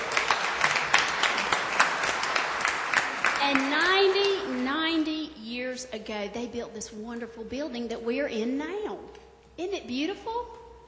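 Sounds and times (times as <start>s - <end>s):
audience applause: 0.0s - 5.0s
speech: 5.8s - 10.6s.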